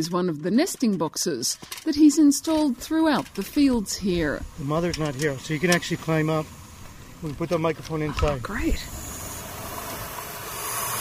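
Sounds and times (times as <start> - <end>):
speech: 0.0 - 6.6, 7.2 - 9.0
baby owls hissing in nesting box: 3.3 - 7.4, 8.4 - 10.9.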